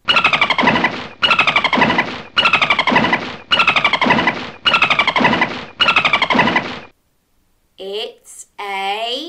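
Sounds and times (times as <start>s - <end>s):
dolphin calls: 0.0s - 6.9s.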